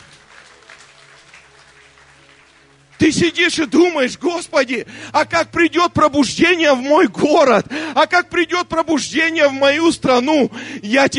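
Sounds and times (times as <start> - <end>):
crowd applauding: 0.0 - 4.0
speech: 3.0 - 11.1.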